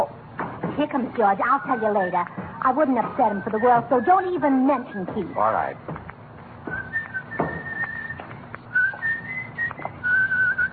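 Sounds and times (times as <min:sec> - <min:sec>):
speech: 0:00.8 - 0:06.0
person whistling a tune: 0:03.2 - 0:05.6, 0:06.7 - 0:10.7.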